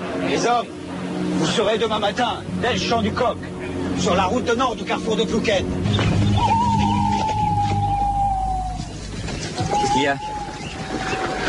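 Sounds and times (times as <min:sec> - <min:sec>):
low rumbling background: 0:00.0 - 0:11.4
speech: 0:00.3 - 0:05.9, 0:10.0 - 0:10.4
imitated owl hoot used as signal: 0:06.3 - 0:09.0, 0:09.6 - 0:10.7.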